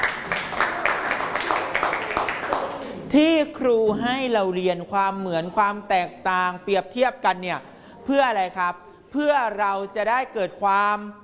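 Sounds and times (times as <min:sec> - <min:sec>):
group of children clapping in a classroom: 0:00.0 - 0:03.0
speech: 0:03.1 - 0:11.2.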